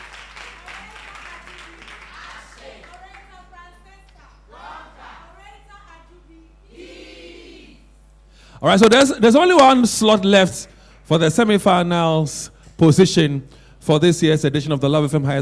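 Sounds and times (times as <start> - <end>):
audience clapping for debaters at a high school debate competition: 0.0 - 4.3
speech: 8.6 - 15.4.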